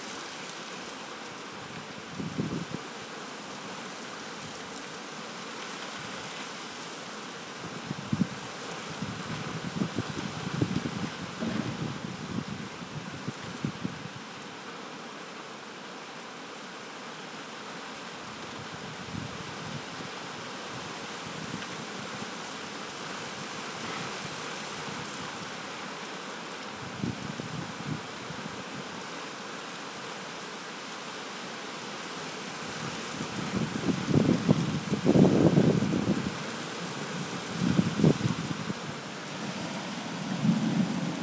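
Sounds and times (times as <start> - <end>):
lashing rain: 0.0 - 41.2
thunder: 11.4 - 12.0.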